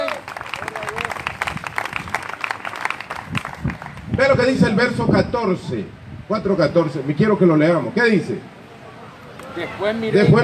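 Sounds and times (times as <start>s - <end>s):
audience applauding: 0.0s - 4.1s
speech: 4.2s - 8.5s, 9.6s - 10.4s.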